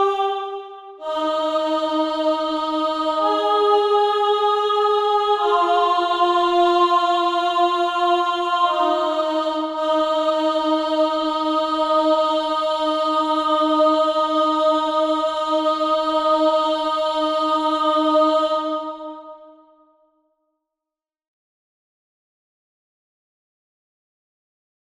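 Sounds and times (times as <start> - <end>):
sopranos singing: 0.0 - 19.5.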